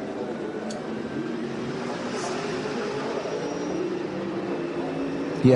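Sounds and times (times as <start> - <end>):
onboard racing car engine at low revs: 0.1 - 5.4.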